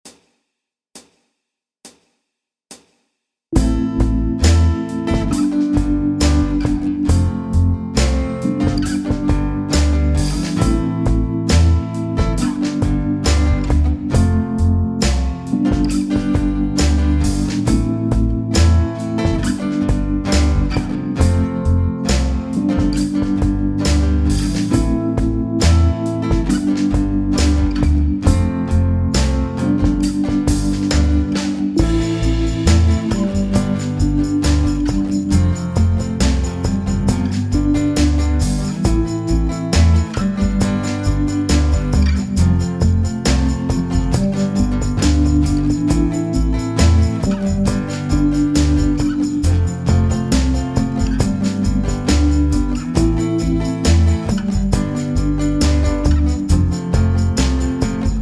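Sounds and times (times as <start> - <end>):
guitar accompaniment for a grand finale: 3.6 - 58.2.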